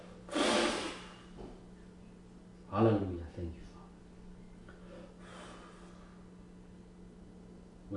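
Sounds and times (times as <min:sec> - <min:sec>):
preacher blowing a forceful breath onto a person: 0:00.0 - 0:01.3, 0:04.9 - 0:06.2
speech: 0:02.7 - 0:03.7.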